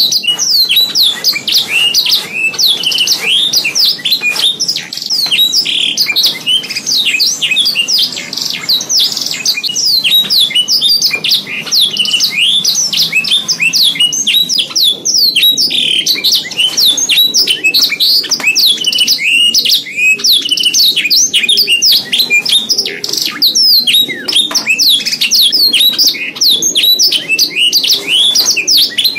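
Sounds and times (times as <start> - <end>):
canary song of the isian type: 0.0 - 29.1.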